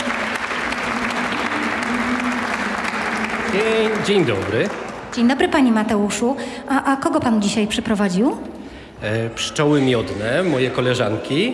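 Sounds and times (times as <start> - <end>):
studio audience applause: 0.0 - 5.3
speech: 3.6 - 11.5.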